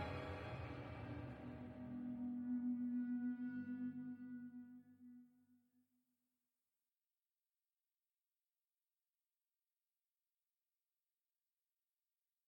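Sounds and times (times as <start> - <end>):
synth pad: 0.0 - 4.6.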